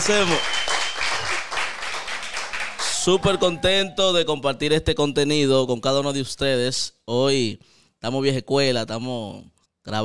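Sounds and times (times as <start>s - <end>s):
applause: 0.0s - 3.8s
speech: 0.1s - 0.7s, 3.0s - 10.0s.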